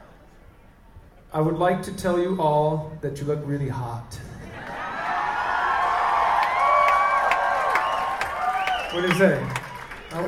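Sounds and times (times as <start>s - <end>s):
speech: 1.3s - 4.2s, 8.9s - 10.2s
school crowd cheering: 4.5s - 10.2s
higher whoops: 4.6s - 10.2s.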